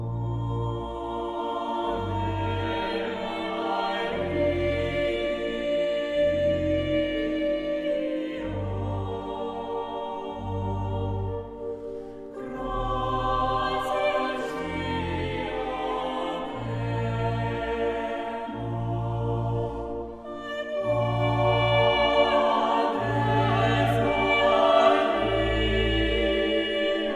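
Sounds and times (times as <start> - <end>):
vocal singing: 0.2 - 27.1.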